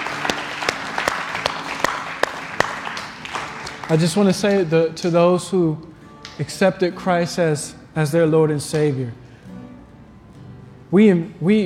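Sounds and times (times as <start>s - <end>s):
audience clapping: 0.0s - 5.2s, 6.2s - 6.4s
speech: 3.9s - 9.2s, 10.9s - 11.6s.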